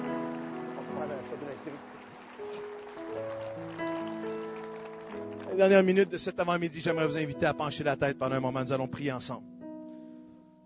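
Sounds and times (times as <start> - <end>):
audience applauding: 0.0 - 6.3
speech: 1.4 - 3.3, 5.6 - 9.5.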